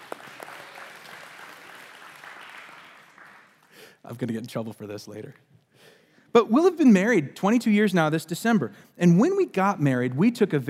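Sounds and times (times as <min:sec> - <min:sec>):
crowd applauding: 0:00.0 - 0:03.9
speech: 0:04.0 - 0:05.5, 0:06.3 - 0:10.6.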